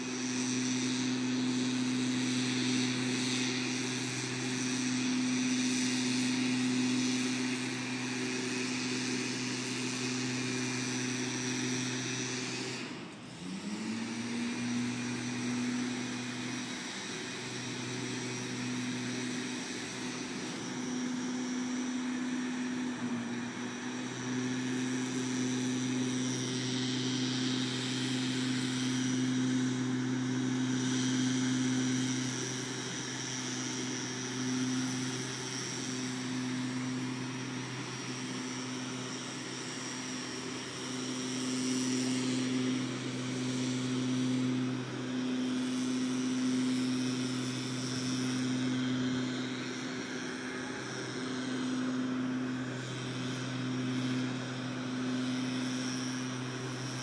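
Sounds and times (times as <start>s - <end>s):
leaf blower in Barrow Park: 0.0s - 57.0s.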